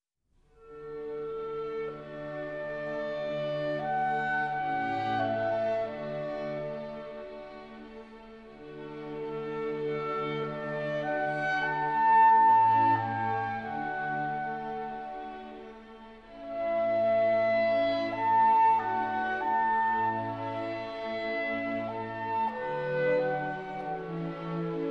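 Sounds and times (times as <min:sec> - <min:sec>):
clarinet concerto in A major: 0:00.6 - 0:24.8.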